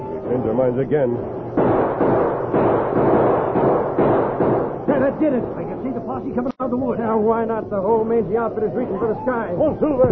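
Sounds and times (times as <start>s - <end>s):
speech: 0.3s - 3.2s, 5.0s - 10.1s
gunshots fired from the woods in a radio drama: 1.5s - 5.6s.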